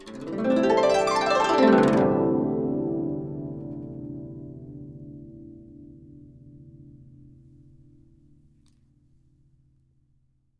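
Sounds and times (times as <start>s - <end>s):
guqin plucked: 0.0s - 5.8s.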